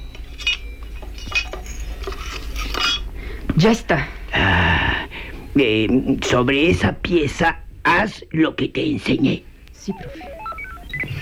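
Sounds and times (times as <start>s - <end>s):
metal cover over a robot's electronic brain being opened: 0.0s - 3.1s
quiet hiss: 0.0s - 11.2s
speech: 3.6s - 4.8s, 5.6s - 10.4s.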